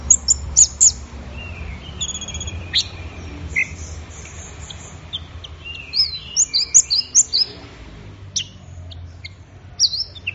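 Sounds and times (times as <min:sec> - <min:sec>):
orange-headed thrush singing: 0:00.0 - 0:07.6, 0:08.4 - 0:10.3
faint low hum: 0:00.0 - 0:10.3.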